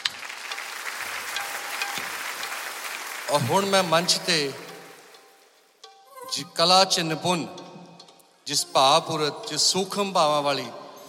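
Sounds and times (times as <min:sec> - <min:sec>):
audience applauding three singers: 0:00.0 - 0:05.2
speech: 0:03.3 - 0:04.6, 0:06.4 - 0:07.6, 0:08.5 - 0:10.8.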